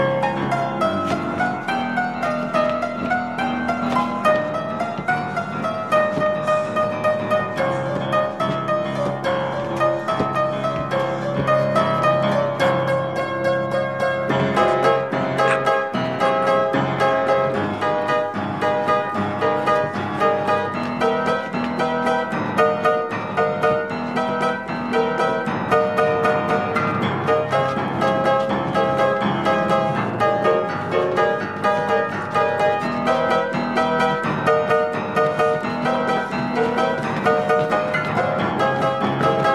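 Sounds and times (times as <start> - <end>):
creepy piano music: 0.0 - 39.5.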